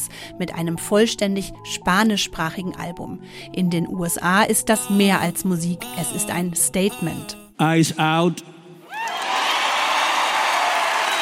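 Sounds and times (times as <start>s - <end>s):
speech: 0.3s - 9.3s
crowd standing ovation with cheering and applause at the Grammys: 8.8s - 11.2s
whoops and whistles: 8.9s - 11.2s.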